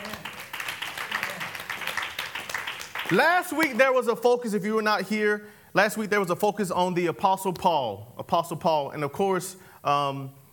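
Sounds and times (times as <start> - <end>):
audience clapping hands: 0.0 - 3.8
speech: 3.1 - 10.4.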